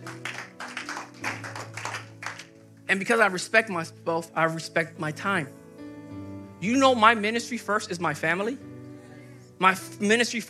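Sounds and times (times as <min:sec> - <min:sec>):
hand clapping: 0:00.0 - 0:02.6
speech: 0:02.9 - 0:05.6, 0:06.6 - 0:08.7, 0:09.6 - 0:10.4.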